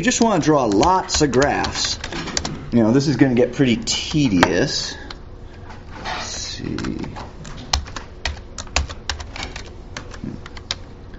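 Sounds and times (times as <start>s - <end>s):
typing on a computer keyboard: 0.0s - 2.6s, 6.7s - 10.8s
speech: 0.0s - 5.0s, 6.6s - 7.3s.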